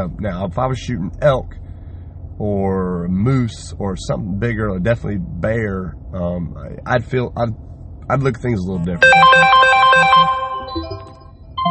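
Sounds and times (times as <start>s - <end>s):
speech: 0.0s - 1.6s, 2.4s - 11.2s
phone ringtone from an incoming call: 9.0s - 11.6s.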